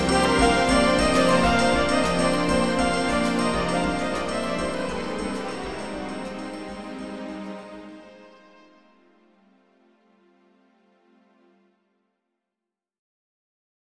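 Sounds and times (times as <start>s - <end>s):
techno music: 0.0s - 7.8s.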